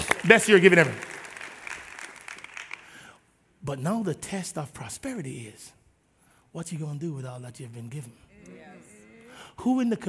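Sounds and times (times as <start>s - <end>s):
crowd applauding: 0.0s - 3.1s
speech: 0.2s - 1.1s, 3.7s - 5.8s, 6.5s - 8.9s, 9.6s - 10.0s.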